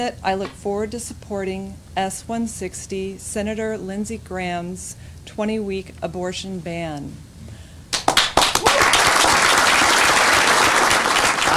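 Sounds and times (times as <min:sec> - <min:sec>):
speech: 0:00.0 - 0:07.3
audience applause: 0:07.9 - 0:11.5.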